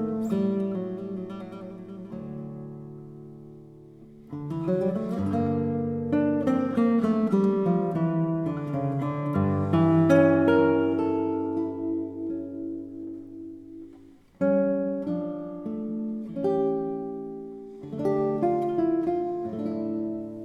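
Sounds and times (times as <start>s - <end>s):
classical guitar piece: 0.0s - 20.4s.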